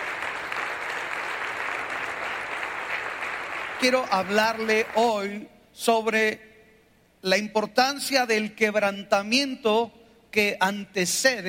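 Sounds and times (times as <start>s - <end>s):
audience applause: 0.0s - 5.2s
speech: 3.8s - 6.5s, 7.2s - 11.4s.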